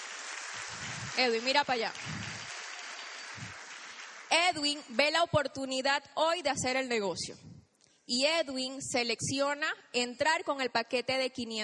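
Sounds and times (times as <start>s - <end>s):
audience applause: 0.0s - 4.3s
speech: 0.7s - 2.3s, 4.3s - 7.5s, 8.1s - 11.6s.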